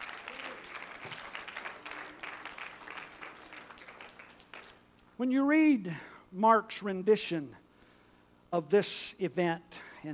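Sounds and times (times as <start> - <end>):
audience applause: 0.0 - 4.8
speech: 5.2 - 7.6, 8.5 - 10.1.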